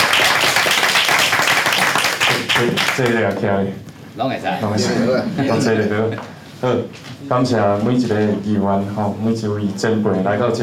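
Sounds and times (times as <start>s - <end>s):
audience applause: 0.0s - 3.2s
speech: 2.6s - 10.6s.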